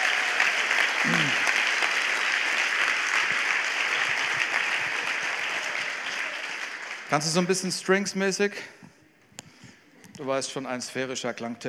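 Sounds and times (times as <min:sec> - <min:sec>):
audience applause for the band: 0:00.0 - 0:07.7
speech: 0:07.1 - 0:08.9, 0:10.2 - 0:11.6.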